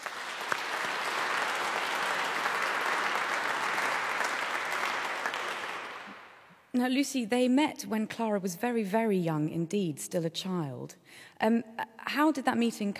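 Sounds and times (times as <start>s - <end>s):
audience applause welcoming two actors and a pianist: 0.0s - 6.5s
speech: 6.8s - 12.9s.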